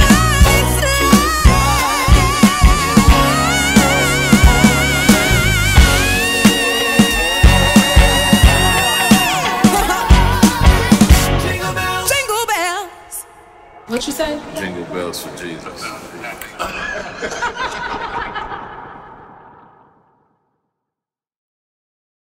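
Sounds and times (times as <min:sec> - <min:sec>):
Christmas song: 0:00.0 - 0:15.6
laughter: 0:04.9 - 0:11.1, 0:15.2 - 0:20.0.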